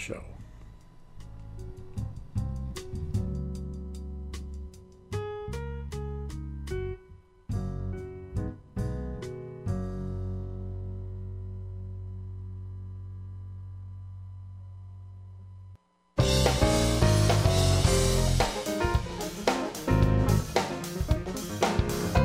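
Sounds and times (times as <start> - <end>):
jazz music: 1.5 - 11.3, 16.2 - 22.2.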